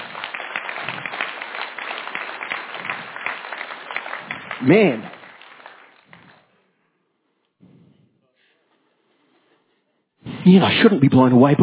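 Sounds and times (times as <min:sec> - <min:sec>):
crowd applauding: 0:00.0 - 0:06.6
speech: 0:04.6 - 0:05.1, 0:10.5 - 0:11.6.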